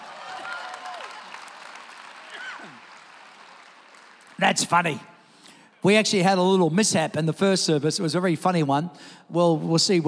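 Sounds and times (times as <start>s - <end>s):
whoops and shouts: 0.0s - 1.3s
crowd applauding and cheering: 0.0s - 5.4s
speech: 4.4s - 5.1s, 5.8s - 10.0s.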